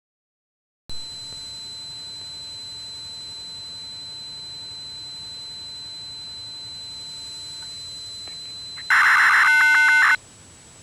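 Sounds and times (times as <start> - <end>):
NMT attempted data connection tones: 6.1 - 10.2.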